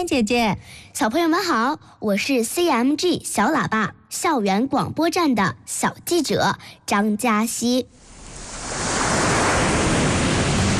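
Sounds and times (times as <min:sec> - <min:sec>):
speech: 0:00.0 - 0:08.1
sea waves crashing against rocks at Gulangyu: 0:08.0 - 0:10.7.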